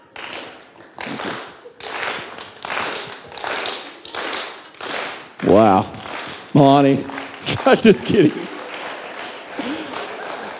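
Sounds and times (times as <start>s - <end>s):
slow clap: 0.1s - 10.5s
laughter: 5.4s - 10.5s
speech: 5.5s - 8.5s.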